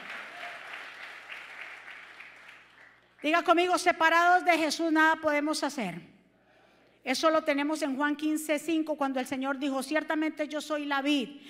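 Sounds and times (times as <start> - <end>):
loud audience applause: 0.0 - 3.0
speech: 3.2 - 6.1, 7.0 - 11.4.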